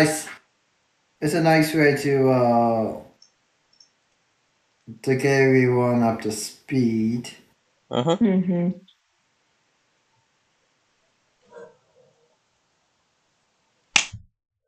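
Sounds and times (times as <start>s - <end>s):
speech: 0.0s - 0.2s, 1.2s - 3.1s, 4.9s - 8.9s
person slapping themself: 14.0s - 14.2s.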